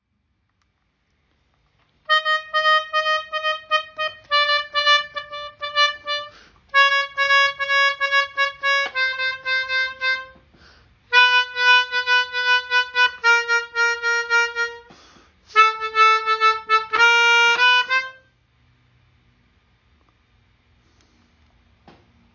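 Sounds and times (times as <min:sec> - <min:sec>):
descending turn melody: 0:02.1 - 0:10.4, 0:11.1 - 0:14.9, 0:15.5 - 0:18.2.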